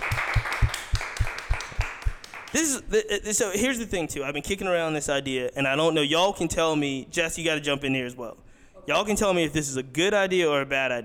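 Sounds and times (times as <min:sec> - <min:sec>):
audience clapping for a guest: 0:00.0 - 0:02.8
speech: 0:02.5 - 0:11.0.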